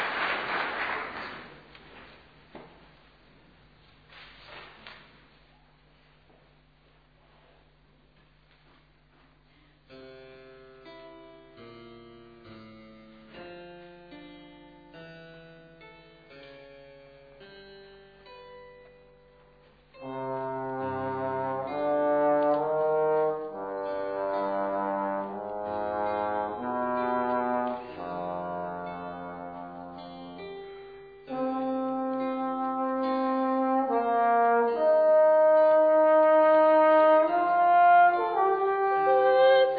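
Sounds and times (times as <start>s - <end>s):
music: 9.9s - 39.7s.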